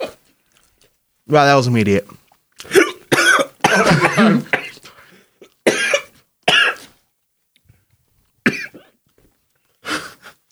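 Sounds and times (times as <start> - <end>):
speech: 1.3 - 2.2, 3.8 - 4.6
hiccups: 2.6 - 4.8, 5.7 - 6.9.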